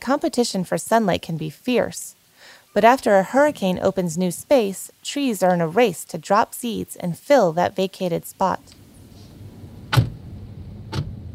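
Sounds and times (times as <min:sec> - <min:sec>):
speech: 0:00.0 - 0:02.2, 0:02.8 - 0:08.8
low steady rumble: 0:08.8 - 0:11.3
doors thunking on a Forest Service Jeep: 0:09.8 - 0:11.3.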